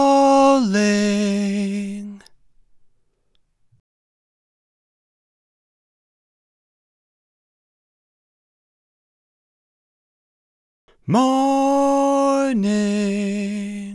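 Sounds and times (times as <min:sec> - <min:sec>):
person singing: 0:00.0 - 0:02.3, 0:11.0 - 0:13.9.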